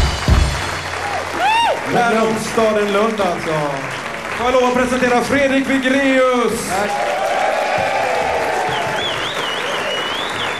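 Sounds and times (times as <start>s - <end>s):
crowd clapping: 0.0s - 10.5s
speech: 1.9s - 7.2s
shrill whistle: 8.7s - 10.5s.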